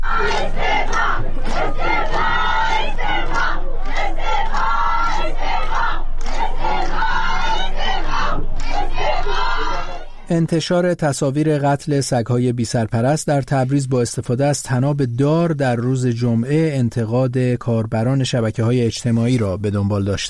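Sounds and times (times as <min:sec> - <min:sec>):
large protest crowd chanting slogans: 0:00.0 - 0:10.3
speech: 0:10.3 - 0:20.2.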